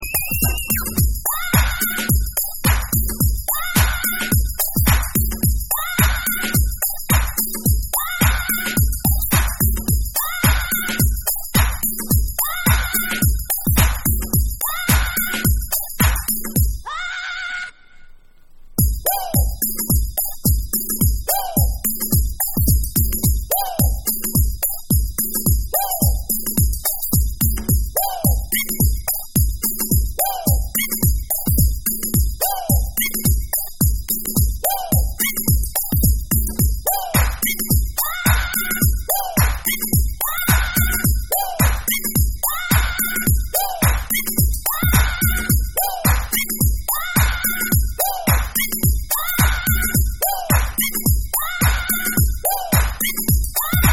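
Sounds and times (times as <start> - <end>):
drums: 0.0 - 16.8, 18.8 - 53.9.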